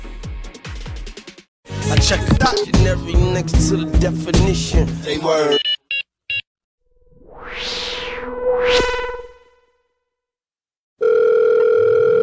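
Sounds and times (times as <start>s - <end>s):
speech: 1.9s - 5.6s
short electronic beeps: 5.5s - 6.4s
rising and falling swept tone: 7.0s - 9.6s
telephone dial tone calling a hotline: 11.0s - 12.2s.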